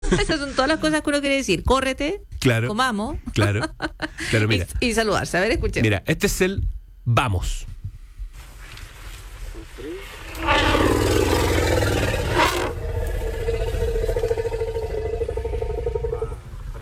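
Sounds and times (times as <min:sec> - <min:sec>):
speech: 0:00.1 - 0:07.7
elephant growling: 0:09.9 - 0:16.8.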